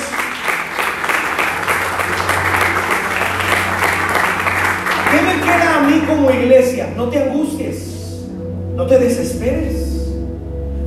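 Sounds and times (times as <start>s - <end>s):
audience applause: 0.0s - 6.0s
speech: 6.1s - 8.0s, 8.8s - 9.8s.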